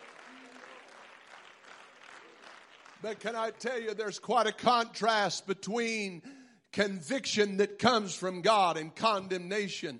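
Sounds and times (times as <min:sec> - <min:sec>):
audience clapping hands: 0:00.0 - 0:04.2
speech: 0:03.0 - 0:09.9.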